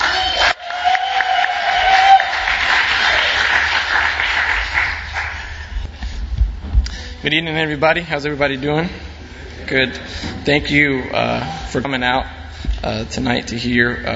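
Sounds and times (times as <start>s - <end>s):
audience applauding to welcome a speaker at an evening talk: 0.0s - 5.8s
speech: 7.2s - 9.1s, 9.7s - 14.1s.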